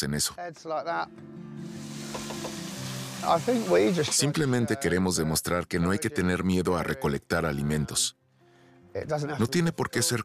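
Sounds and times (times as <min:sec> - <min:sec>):
speech: 0:00.0 - 0:08.2, 0:09.0 - 0:10.2
giant parsley sizzling while frying in a pan: 0:01.7 - 0:04.5.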